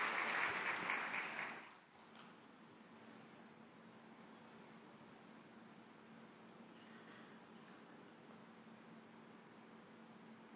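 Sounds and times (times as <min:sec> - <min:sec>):
audience applause welcoming a speaker: 0:00.0 - 0:01.8.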